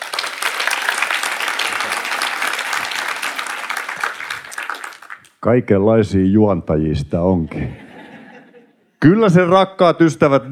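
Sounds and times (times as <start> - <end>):
audience clapping: 0.0 - 5.4
speech: 5.4 - 7.8, 9.0 - 10.4
laughter: 7.5 - 8.9.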